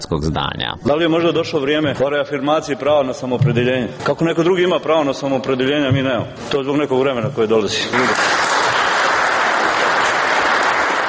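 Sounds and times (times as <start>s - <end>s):
speech: 0.0s - 8.4s
political assembly applause: 7.9s - 11.0s.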